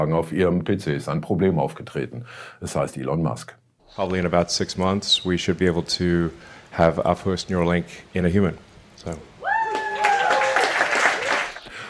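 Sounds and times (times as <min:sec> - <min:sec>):
speech: 0:00.0 - 0:09.3
high drawn-out whoops: 0:09.4 - 0:11.6
audience cheering and applause: 0:09.4 - 0:11.7.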